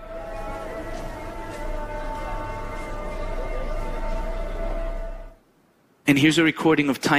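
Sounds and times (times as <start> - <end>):
market ambience in Morocco: 0.0 - 5.4
speech: 6.1 - 7.1.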